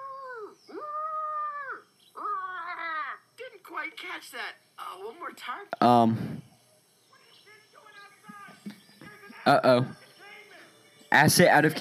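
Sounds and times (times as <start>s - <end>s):
voice imitating a brachiosaurus call: 0.0s - 3.3s
speech: 3.8s - 6.4s, 9.5s - 10.0s, 11.1s - 11.7s.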